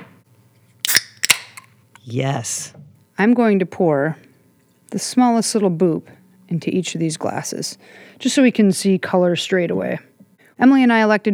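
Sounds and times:
beer can cracked open: 0.8 - 1.9
speech: 2.0 - 4.3, 4.9 - 11.3.

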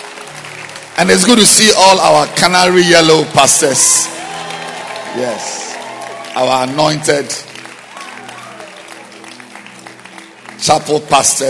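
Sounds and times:
audience clapping hands: 0.0 - 11.4
speech: 1.0 - 4.2, 5.2 - 5.6, 6.4 - 7.5, 10.6 - 11.4.

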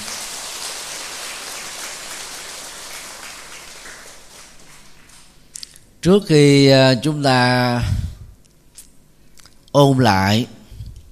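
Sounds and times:
audience applause: 0.0 - 5.4
speech: 6.0 - 8.0, 9.8 - 10.6.

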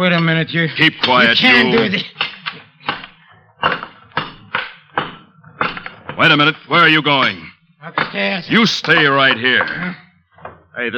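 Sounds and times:
speech: 0.0 - 2.2, 6.2 - 10.0, 10.8 - 10.9
crowbar striking a brick wall: 1.0 - 6.2.

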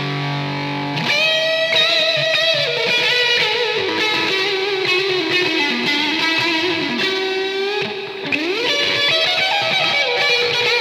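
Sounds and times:
electric lead guitar with reverb and delay: 0.0 - 10.7.

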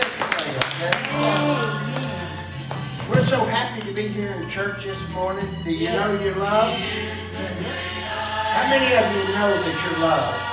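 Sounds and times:
audience hand clapping: 0.0 - 3.1
speech: 0.8 - 1.4, 3.3 - 10.5.

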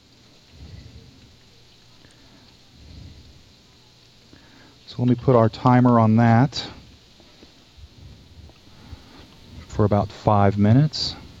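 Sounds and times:
pot of red beans boiling: 0.0 - 11.3
speech: 5.0 - 6.8, 9.8 - 11.2.

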